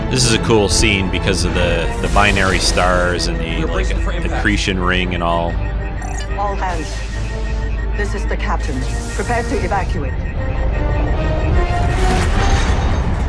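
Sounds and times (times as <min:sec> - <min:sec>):
speech: 0:00.1 - 0:05.7, 0:06.4 - 0:07.0, 0:07.9 - 0:10.8
sci-fi tractor beam sound effect: 0:00.2 - 0:13.1.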